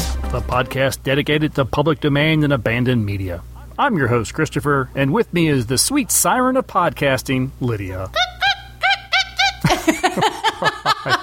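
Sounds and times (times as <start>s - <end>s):
speech: 0.3s - 8.3s, 10.2s - 11.2s
human voice imitating dolphin chatter: 7.8s - 9.7s
laughter: 8.1s - 11.2s.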